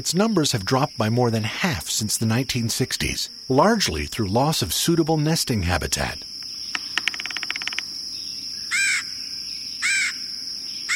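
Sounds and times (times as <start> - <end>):
speech: 0.0 - 6.4
red-headed woodpecker call: 5.9 - 9.2, 9.8 - 10.2.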